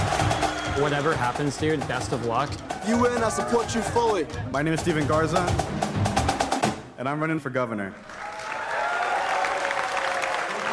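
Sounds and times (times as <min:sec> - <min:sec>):
audience applause: 0:00.0 - 0:04.1, 0:08.0 - 0:10.7
speech: 0:00.8 - 0:05.8, 0:07.0 - 0:08.2.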